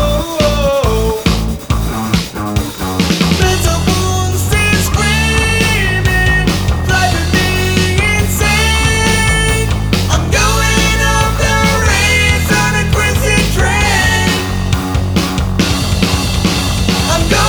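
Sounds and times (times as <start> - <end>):
person singing: 0.0 - 1.4, 3.4 - 14.8, 17.0 - 17.4
rock guitar backing track: 0.0 - 17.4.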